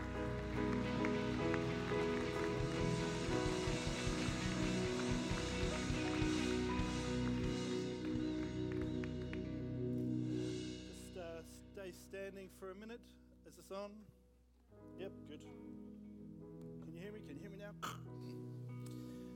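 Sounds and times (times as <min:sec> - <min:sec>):
audience clapping: 0:00.0 - 0:10.0
speech: 0:11.8 - 0:15.9, 0:17.0 - 0:19.0.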